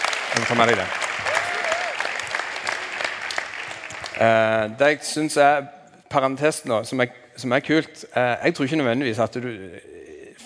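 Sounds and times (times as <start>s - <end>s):
audience applause: 0.0s - 4.6s
speech: 0.4s - 1.0s, 4.2s - 9.9s.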